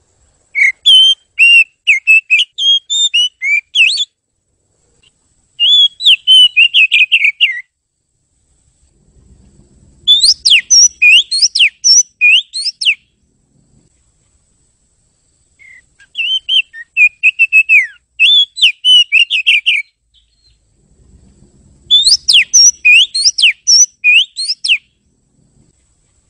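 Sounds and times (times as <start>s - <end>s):
bird whistling bright pure notes: 0.6s - 4.1s, 5.6s - 7.7s, 10.1s - 13.0s, 15.6s - 20.6s, 21.9s - 24.9s.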